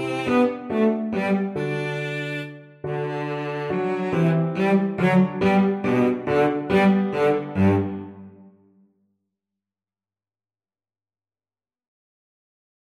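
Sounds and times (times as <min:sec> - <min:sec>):
piano trio: 0:00.0 - 0:08.2.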